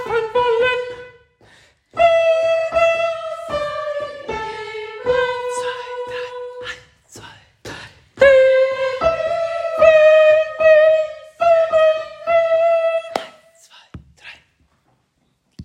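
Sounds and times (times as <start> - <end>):
soprano singing a Gloria: 0.0 - 1.3, 2.0 - 7.0, 8.2 - 13.6.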